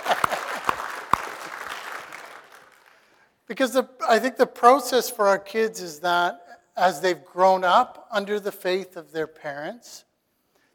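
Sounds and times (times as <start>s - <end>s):
audience clapping: 0.0s - 3.2s
speech: 3.5s - 10.1s.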